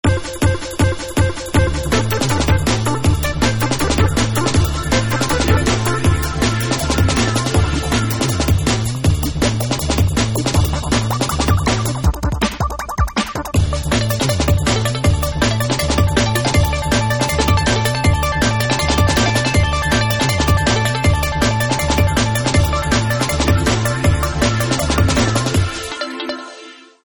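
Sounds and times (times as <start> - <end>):
drum and bass music: 0.0 - 26.8.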